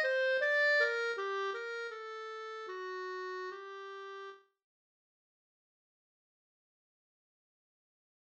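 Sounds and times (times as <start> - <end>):
slow andante melody: 0.0 - 4.4.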